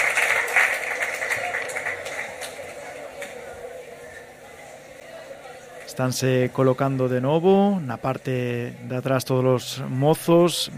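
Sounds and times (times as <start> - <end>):
audience applause after choir performance: 0.0 - 3.6
speech: 6.0 - 10.7.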